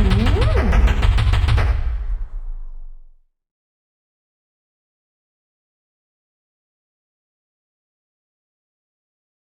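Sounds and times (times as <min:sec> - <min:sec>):
theremin playing in a trio: 0:00.0 - 0:01.2.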